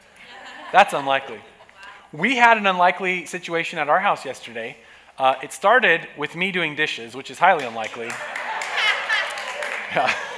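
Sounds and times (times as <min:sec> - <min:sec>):
laughter: 0:00.2 - 0:02.0, 0:08.0 - 0:10.3
speech: 0:00.7 - 0:01.5, 0:02.1 - 0:08.4, 0:09.9 - 0:10.2
audience applause: 0:07.8 - 0:10.3.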